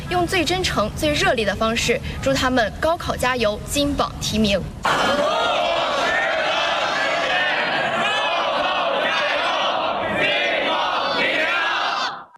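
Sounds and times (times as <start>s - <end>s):
speech: 0.2s - 5.4s
students shouting in unison on a school sports field at night: 4.9s - 12.3s.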